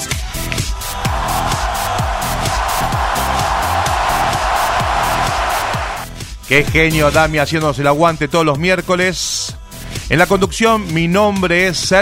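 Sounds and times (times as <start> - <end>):
applause sound effect: 0.9 - 6.1
speech: 6.5 - 12.0.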